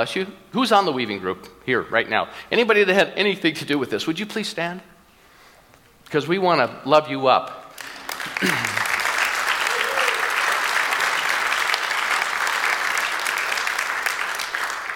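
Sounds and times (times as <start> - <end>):
speech: 0.0 - 4.9, 6.1 - 7.6, 8.4 - 8.8
large audience applause: 7.8 - 14.9.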